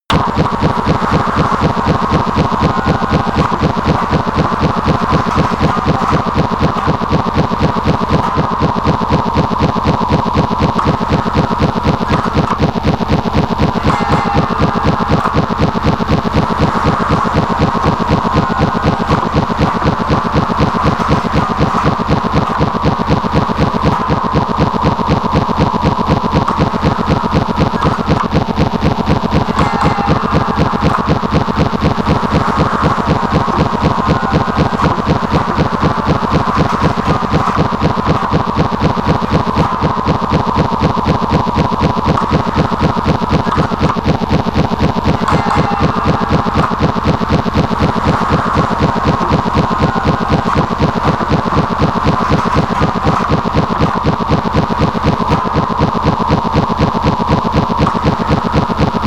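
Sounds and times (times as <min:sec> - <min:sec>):
high hypnotic industrial atmosphere: 0:00.0 - 0:59.0.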